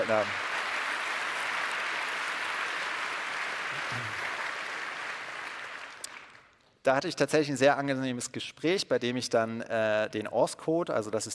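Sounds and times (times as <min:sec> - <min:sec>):
speech: 0:00.0 - 0:00.4, 0:03.8 - 0:04.3, 0:06.8 - 0:11.3
audience applause: 0:00.0 - 0:06.5.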